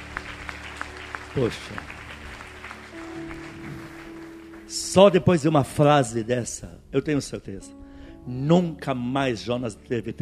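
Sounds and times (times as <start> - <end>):
audience clapping: 0.0 - 6.2
speech: 1.3 - 2.0, 4.7 - 10.2.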